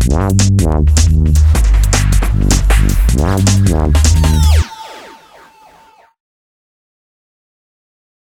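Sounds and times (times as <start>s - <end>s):
drum and bass music: 0.0s - 6.2s.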